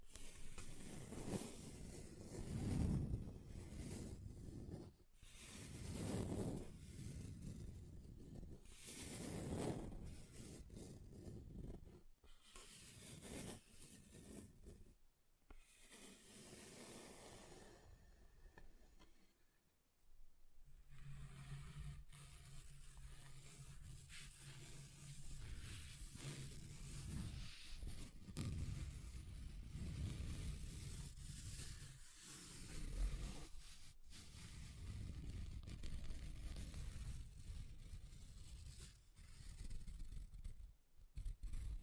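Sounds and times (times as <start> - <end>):
scratching across a table: 0.1 - 17.8, 20.8 - 41.8.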